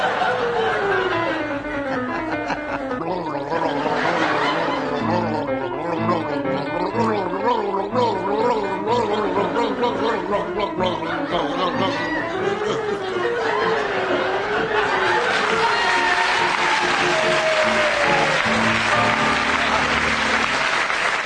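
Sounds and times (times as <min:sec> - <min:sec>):
laughter: 0:00.0 - 0:21.1
man gargling a rapid classical tune in a gargling contest: 0:02.8 - 0:13.2.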